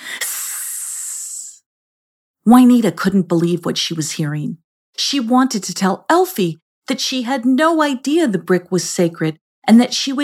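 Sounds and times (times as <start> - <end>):
snake hissing: 0.0 - 1.6
speech: 2.4 - 10.2.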